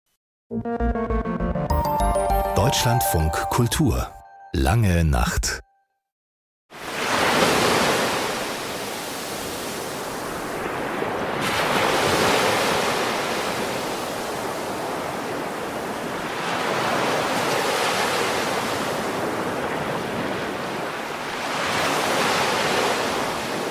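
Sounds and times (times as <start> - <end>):
speech: 0.5 - 1.3, 2.6 - 5.6
ocean waves breaking on shore: 6.7 - 23.6.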